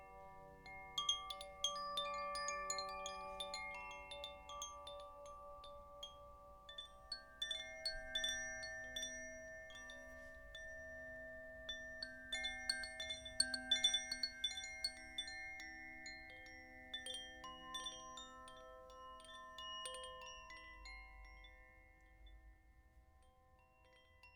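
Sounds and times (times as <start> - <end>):
small bells ringing: 0.0 - 24.3.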